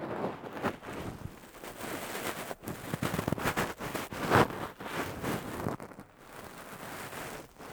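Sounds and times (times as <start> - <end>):
cotton swab ear cleaning on the left side: 0.2 - 7.7.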